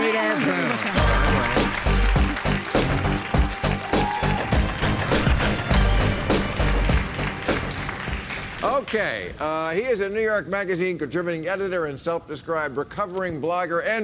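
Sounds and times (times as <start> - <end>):
studio audience applause: 0.0 - 9.8
speech: 8.8 - 14.0.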